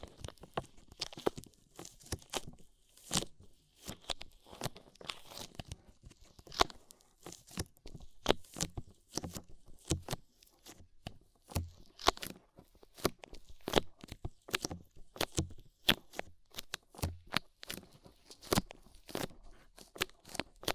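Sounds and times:
soft crinkling and tearing: 0:00.0 - 0:10.6, 0:11.8 - 0:20.7
crunchy clicks and scrapes of rhinestone and clay removal: 0:00.0 - 0:20.7.

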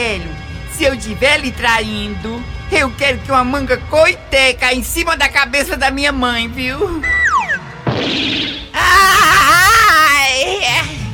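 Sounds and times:
speech: 0:00.1 - 0:07.2
woman screaming outside: 0:08.7 - 0:10.8.

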